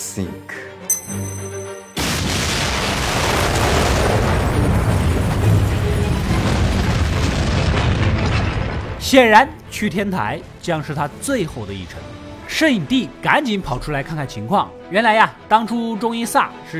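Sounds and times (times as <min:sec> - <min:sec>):
speech: 0:00.2 - 0:00.6, 0:09.1 - 0:16.7
explosion in a school suspense drama: 0:02.0 - 0:09.7.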